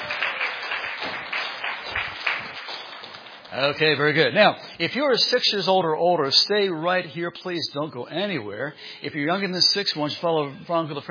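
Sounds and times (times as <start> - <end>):
audience applauding: 0.0 - 4.2
speech: 3.5 - 11.0.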